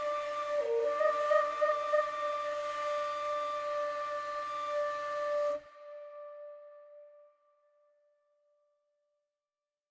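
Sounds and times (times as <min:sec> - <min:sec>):
otherworldly flute: 0:00.0 - 0:07.4.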